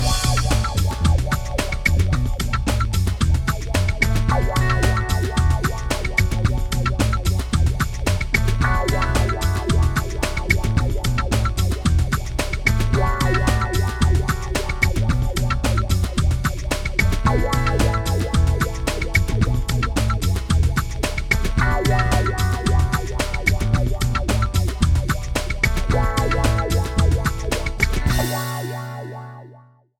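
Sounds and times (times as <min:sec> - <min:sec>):
groovy music without melody: 0:00.0 - 0:29.7.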